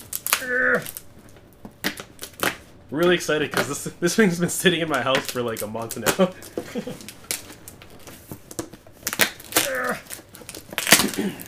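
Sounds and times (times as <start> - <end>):
packing tape on a box being cut with a toy keyblade: 0.0 - 3.9, 4.8 - 11.4
speech: 0.4 - 1.0, 2.9 - 7.2.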